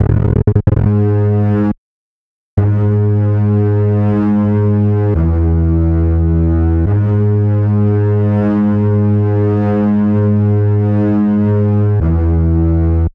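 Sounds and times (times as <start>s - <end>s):
bass: 0.0s - 1.8s, 2.6s - 13.1s.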